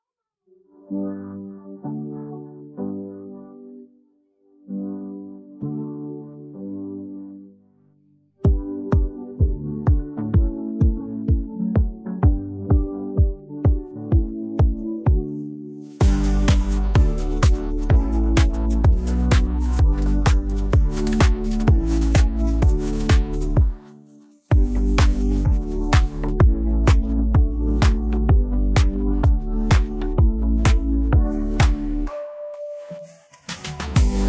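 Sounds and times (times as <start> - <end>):
instrumental music: 0.6 - 34.2.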